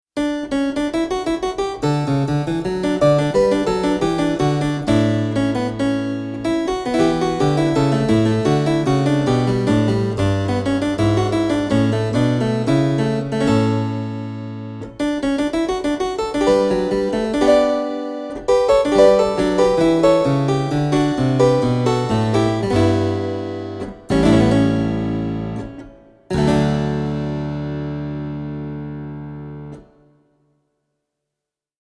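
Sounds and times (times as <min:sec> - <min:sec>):
harpsichord: 0:00.2 - 0:29.8.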